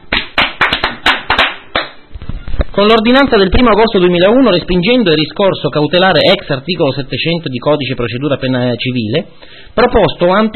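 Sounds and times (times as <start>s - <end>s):
sharp hand claps: 0.0s - 2.0s
speech: 2.8s - 10.5s.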